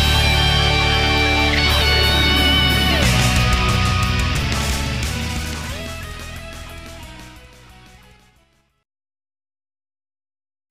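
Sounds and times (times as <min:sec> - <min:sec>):
metal music canon: 0:00.0 - 0:08.4.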